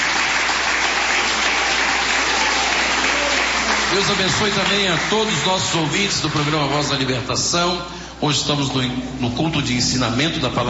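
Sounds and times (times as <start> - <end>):
church audience clapping: 0.0 - 7.3
speech: 3.9 - 10.6.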